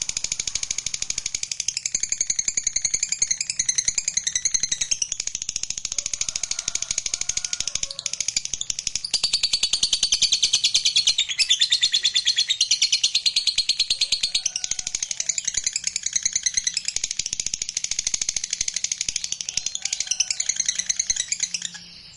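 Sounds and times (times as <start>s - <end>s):
lovebird song: 0.0s - 22.1s.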